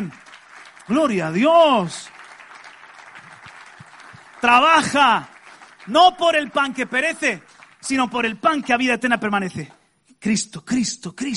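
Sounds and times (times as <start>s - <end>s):
speech: 0.0s - 0.2s, 0.9s - 2.2s, 4.4s - 5.3s, 5.9s - 11.3s
audience applause: 0.0s - 8.6s.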